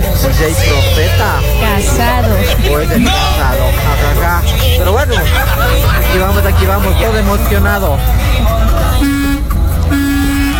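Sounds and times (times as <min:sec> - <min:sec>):
laughter: 0:00.0 - 0:08.5
constant road and engine rumble: 0:00.0 - 0:10.5
speech: 0:00.4 - 0:08.8
vehicle horn honking: 0:08.9 - 0:10.5.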